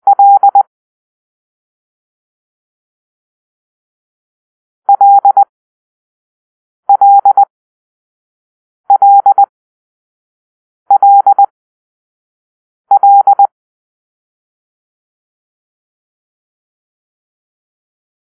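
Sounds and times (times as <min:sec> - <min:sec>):
morse code letter L: 0:00.1 - 0:00.6, 0:04.9 - 0:05.4, 0:09.0 - 0:09.4, 0:10.9 - 0:11.5, 0:12.9 - 0:13.5.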